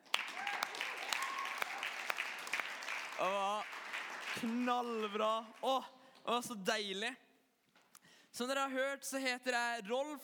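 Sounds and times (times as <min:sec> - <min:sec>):
audience applause: 0:00.0 - 0:05.7
speech: 0:03.2 - 0:03.7, 0:04.4 - 0:07.2, 0:08.4 - 0:10.2.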